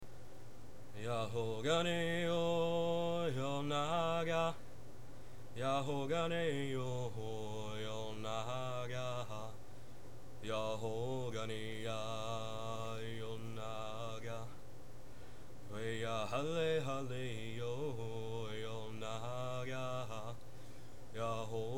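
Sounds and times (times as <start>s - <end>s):
chanting: 1.0s - 4.6s, 5.6s - 9.6s, 10.4s - 14.6s, 15.7s - 20.4s, 21.1s - 21.7s.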